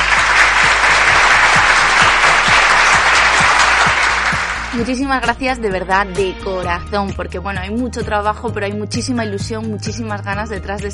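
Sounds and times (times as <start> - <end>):
applause: 0.0 - 5.0
speech: 4.8 - 10.9.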